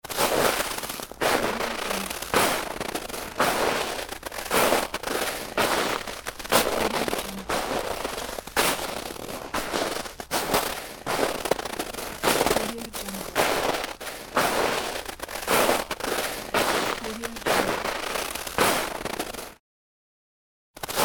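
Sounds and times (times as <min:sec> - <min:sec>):
footsteps in snow: 0:00.0 - 0:19.6.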